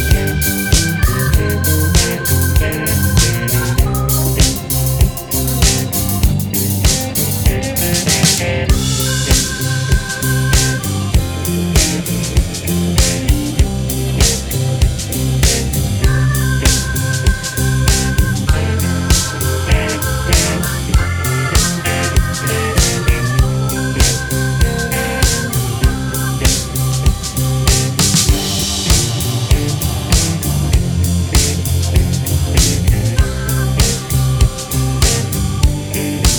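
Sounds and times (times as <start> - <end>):
disco blues music in C: 0.0 - 36.3.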